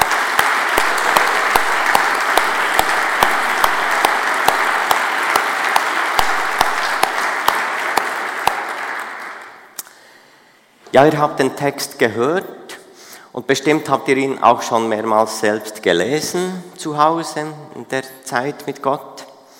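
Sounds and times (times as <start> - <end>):
audience applause: 0.0 - 9.7
speech: 11.0 - 12.6, 13.4 - 19.2.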